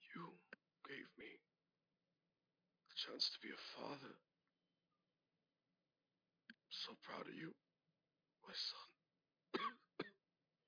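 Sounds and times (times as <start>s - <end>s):
speech: 0.9s - 1.5s, 3.0s - 4.3s, 6.8s - 7.6s, 8.4s - 9.0s
dying man coughing up blood in an audio drama: 9.6s - 10.2s.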